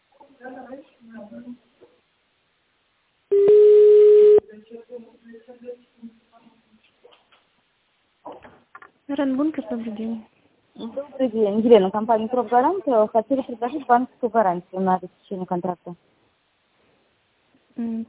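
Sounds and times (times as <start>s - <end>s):
telephone ringback tone as a call is transferred to an operator: 3.3s - 4.4s
speech: 9.2s - 16.2s, 17.8s - 18.0s.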